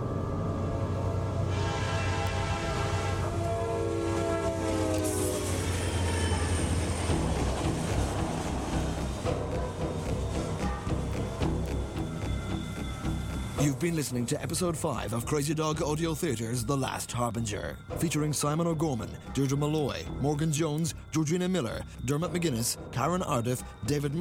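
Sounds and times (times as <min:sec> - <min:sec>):
train rumbling along the tracks: 0:00.1 - 0:14.5
multi-tone train horn: 0:00.9 - 0:09.6
speech: 0:13.7 - 0:24.1.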